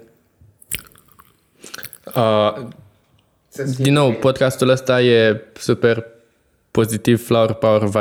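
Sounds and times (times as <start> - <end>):
crunchy chewing of peanuts: 0.6 - 2.3
speech: 2.1 - 2.8, 3.6 - 6.1, 6.8 - 7.9.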